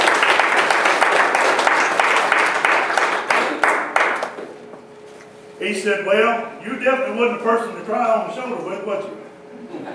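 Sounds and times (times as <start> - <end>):
crowd applause: 0.0 - 4.4
speech: 5.6 - 9.2
laughter: 9.5 - 9.9.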